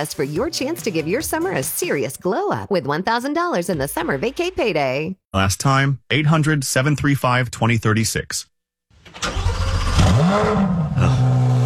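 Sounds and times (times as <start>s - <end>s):
speech: 0.0s - 8.5s, 10.3s - 11.2s
2026 Corvette Stingray engine starting and revving while driving: 9.5s - 11.6s.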